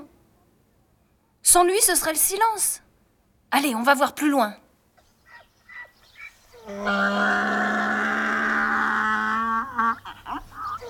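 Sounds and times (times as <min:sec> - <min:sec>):
speech: 0:01.5 - 0:02.8, 0:03.5 - 0:04.6, 0:06.7 - 0:07.8
donkey braying: 0:05.7 - 0:10.8.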